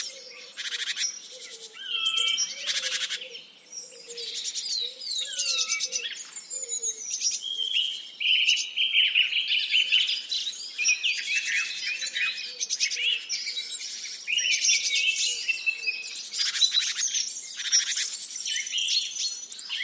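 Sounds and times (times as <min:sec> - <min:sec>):
birdsong chorus: 0:00.0 - 0:19.8.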